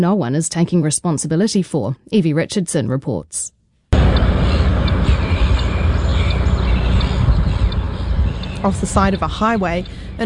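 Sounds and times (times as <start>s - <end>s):
speech: 0.0s - 3.6s, 8.6s - 10.2s
flock of seagulls squawking: 4.0s - 10.2s.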